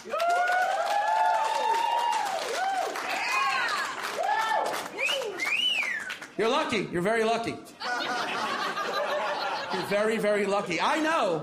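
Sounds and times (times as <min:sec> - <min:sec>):
crowd whooping and shouting: 0:00.0 - 0:06.0
audience applause: 0:00.0 - 0:06.4
speech: 0:06.4 - 0:07.7, 0:09.8 - 0:11.4
laughter: 0:07.8 - 0:11.4.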